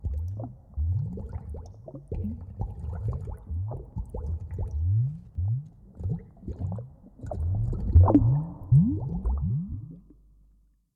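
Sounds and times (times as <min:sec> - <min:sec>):
bubbles: 0:00.0 - 0:10.2.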